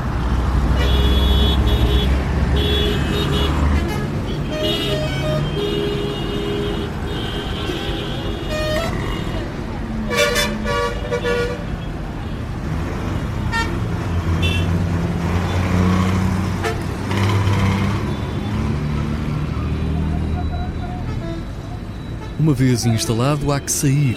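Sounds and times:
busy Asian city street traffic: 0.0 - 24.1
car horns honking: 0.7 - 9.5, 10.1 - 11.9, 13.4 - 14.8, 16.5 - 19.2, 20.1 - 24.1
indistinct voices of people: 22.4 - 24.1
speech: 22.5 - 24.1.

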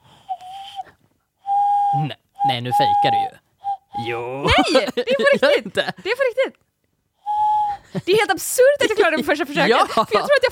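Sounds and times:
cupped-hand whistle imitating a dove: 0.2 - 2.0, 7.2 - 7.7
speech: 2.0 - 3.4, 4.0 - 6.6, 7.9 - 10.5
laughter: 4.4 - 6.0.

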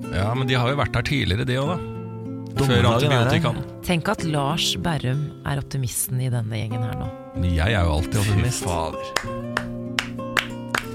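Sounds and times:
speech: 0.0 - 2.0, 2.6 - 9.8
hand clapping: 9.0 - 10.9.

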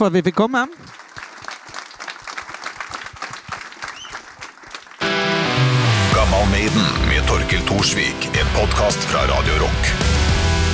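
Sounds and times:
speech: 0.0 - 1.0, 7.5 - 10.2
audience applause at live show: 0.3 - 5.2
loud music: 5.0 - 10.7.

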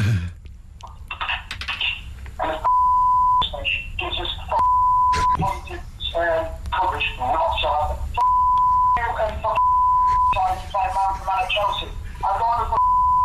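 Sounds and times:
BBC local radio recording speech: 0.9 - 2.8, 3.4 - 13.2
censor bleeps over a radio recording: 2.6 - 3.6, 4.5 - 5.4, 8.2 - 10.4, 12.8 - 13.2.

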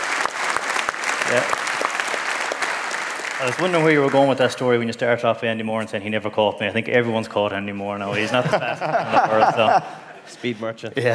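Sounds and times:
live audience applause: 0.0 - 4.6
speech: 1.3 - 1.6, 3.4 - 11.1
laughter: 8.0 - 11.1.

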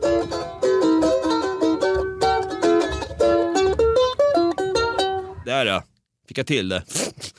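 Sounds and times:
charango, small South American guitar with many strings, playing a lively passage: 0.0 - 5.4
speech: 5.6 - 7.3.

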